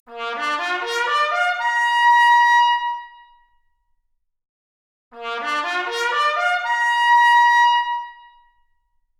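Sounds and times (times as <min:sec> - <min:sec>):
trumpet arpeggio: 0:00.2 - 0:01.9, 0:05.2 - 0:07.8.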